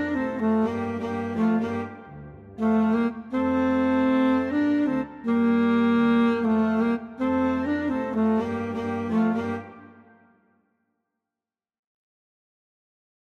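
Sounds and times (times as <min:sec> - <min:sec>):
alto saxophone: 0:00.0 - 0:10.3.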